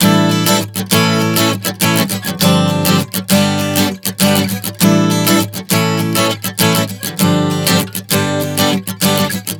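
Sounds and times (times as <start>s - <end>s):
acoustic guitar chord progression: 0.0s - 9.5s.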